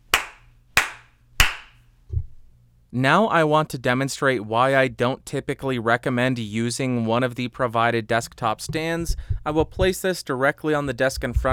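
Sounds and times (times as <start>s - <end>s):
hand claps in an untreated room recorded through a Mackie EleMent EM-USB microphone: 0.1s - 1.8s
speech: 2.9s - 11.5s
dull low thud: 8.6s - 10.0s, 11.2s - 11.5s.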